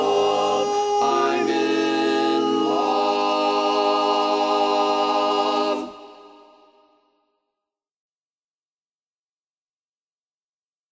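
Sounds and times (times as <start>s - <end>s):
tenor singing: 0.0s - 6.6s.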